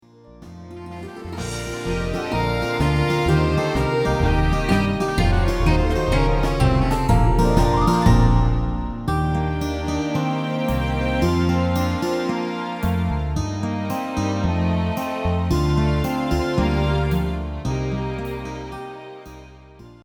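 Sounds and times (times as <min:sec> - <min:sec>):
instrumental music: 0:00.0 - 0:20.0.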